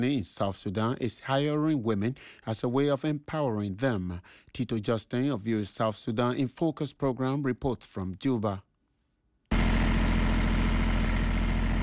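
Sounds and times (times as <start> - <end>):
speech: 0.0 - 8.7
soap-making machine at Junubi Soap Company in Juba running: 9.5 - 11.8.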